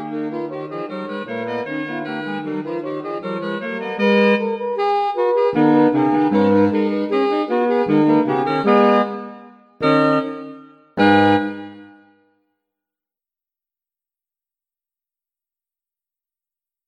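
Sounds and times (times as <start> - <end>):
saxophone: 0.0 - 12.3.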